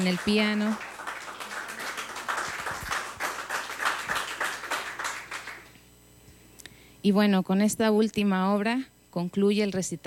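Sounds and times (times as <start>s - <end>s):
speech: 0.0s - 0.9s, 7.0s - 10.0s
audience applause: 0.0s - 5.7s.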